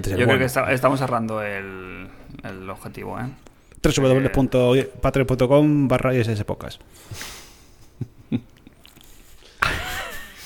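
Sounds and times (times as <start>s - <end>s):
speech: 0.0s - 7.4s, 8.3s - 8.5s
person sipping beer: 8.6s - 9.6s.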